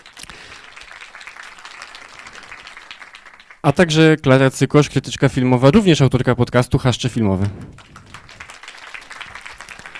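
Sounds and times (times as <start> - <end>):
audience applause: 0.0 - 3.6, 7.5 - 9.9
speech: 3.6 - 7.9.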